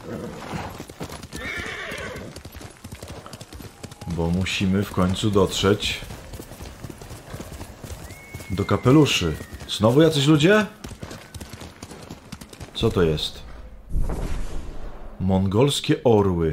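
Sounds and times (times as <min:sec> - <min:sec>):
horse hooves clip-clopping: 0:00.0 - 0:13.2
speech: 0:04.2 - 0:06.1, 0:08.6 - 0:10.8, 0:12.8 - 0:13.5, 0:15.3 - 0:16.5.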